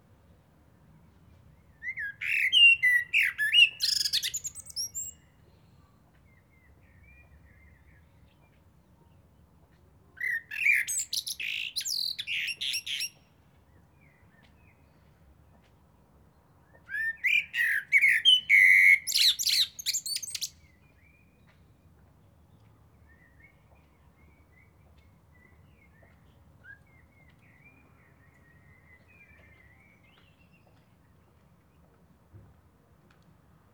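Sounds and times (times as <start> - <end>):
common blackbird singing whistled phrases and twitters: 1.8 - 5.7, 10.2 - 13.2, 16.8 - 21.5, 23.0 - 30.7.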